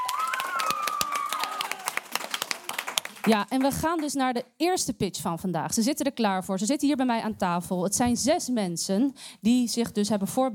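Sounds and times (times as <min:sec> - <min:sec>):
audience applause: 0:00.0 - 0:04.1
speech: 0:03.3 - 0:10.5.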